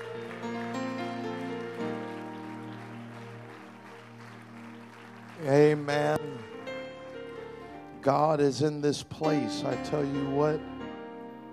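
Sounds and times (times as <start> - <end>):
audience clapping hands: 0.0 - 8.0
sustained droning keyboard chords: 0.0 - 11.5
speech: 5.4 - 6.6, 8.0 - 10.7.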